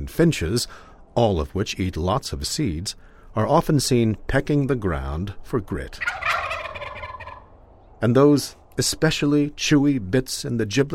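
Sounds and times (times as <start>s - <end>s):
speech: 0.0s - 6.2s, 8.0s - 10.9s
turkey gobble: 6.0s - 7.6s.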